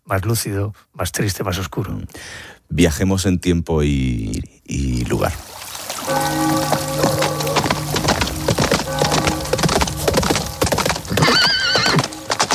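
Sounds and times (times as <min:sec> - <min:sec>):
speech: 0:00.1 - 0:07.1
horses clip-clopping: 0:05.8 - 0:12.5
horse neighing: 0:11.1 - 0:12.2.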